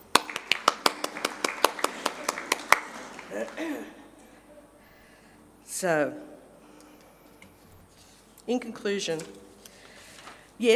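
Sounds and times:
one person clapping hands: 0:00.0 - 0:04.0
speech: 0:03.4 - 0:04.0, 0:05.8 - 0:06.3, 0:08.5 - 0:09.4, 0:10.6 - 0:10.7.

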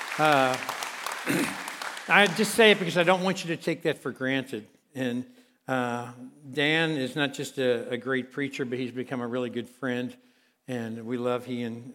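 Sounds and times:
audience clapping: 0:00.0 - 0:03.5
speech: 0:00.2 - 0:11.9.

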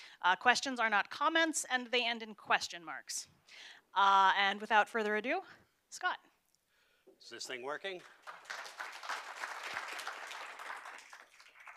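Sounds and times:
speech: 0:00.2 - 0:06.3, 0:07.2 - 0:08.7
audience applause: 0:08.0 - 0:11.7.

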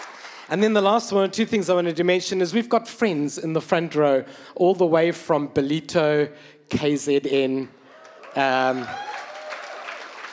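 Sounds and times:
audience clapping: 0:00.0 - 0:00.8, 0:08.0 - 0:10.3
speech: 0:00.5 - 0:07.8, 0:08.4 - 0:09.1.

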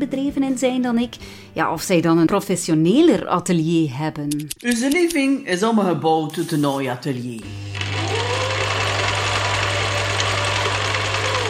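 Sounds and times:
speech: 0:00.0 - 0:07.8
home sewing machine rattling in a living room: 0:07.8 - 0:11.4.

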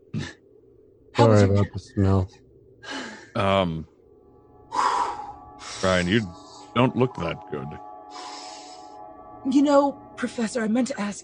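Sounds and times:
speech: 0:01.2 - 0:02.4, 0:03.4 - 0:03.9, 0:05.8 - 0:07.9, 0:09.4 - 0:11.2
person taking a big breath of fresh air: 0:02.8 - 0:03.4, 0:04.6 - 0:06.8, 0:08.0 - 0:09.1.

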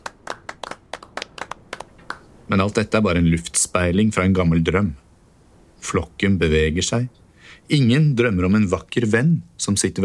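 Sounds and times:
person clapping: 0:00.0 - 0:02.3
speech: 0:02.5 - 0:05.0, 0:05.8 - 0:10.0.

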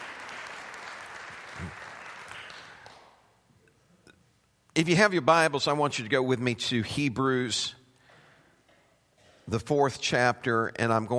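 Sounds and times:
audience clapping hands: 0:00.0 - 0:03.3
speech: 0:04.8 - 0:07.8, 0:09.5 - 0:11.1.

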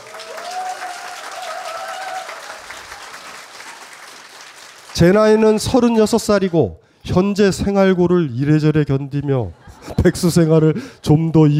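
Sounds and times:
audience applause: 0:00.0 - 0:05.6
speech: 0:05.0 - 0:11.5
laughter: 0:09.1 - 0:11.5.

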